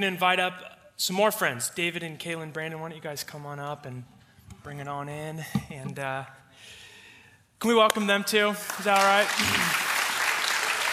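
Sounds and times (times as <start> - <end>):
speech: 0.0 - 6.8, 7.6 - 9.8
audience clapping: 7.8 - 10.9.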